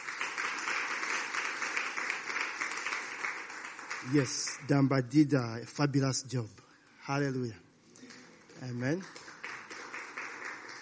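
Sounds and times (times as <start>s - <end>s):
audience applause: 0.0s - 4.9s, 8.0s - 10.7s
speech: 4.0s - 7.6s, 8.6s - 9.2s.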